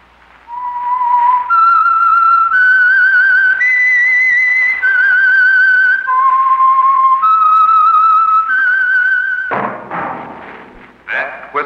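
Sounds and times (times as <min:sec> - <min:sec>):
lone whistler performing a radio show signature theme: 0:00.5 - 0:09.5
loud knocking thuds: 0:09.5 - 0:11.3.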